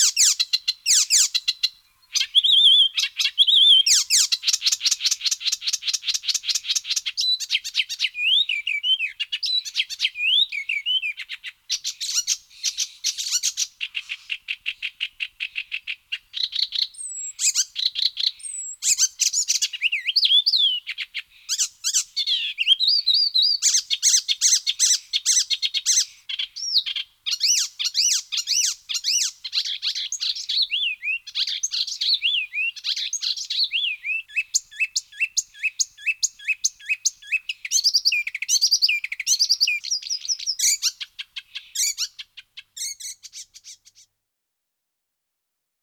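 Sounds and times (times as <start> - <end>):
Icterine warbler Hippolais icterina singing: 0.0 - 44.1.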